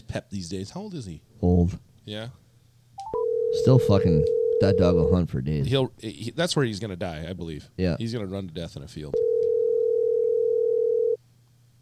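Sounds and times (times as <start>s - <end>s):
speech: 0.1s - 2.4s, 3.6s - 9.2s
phone call ringing out: 3.0s - 5.1s, 9.2s - 11.2s.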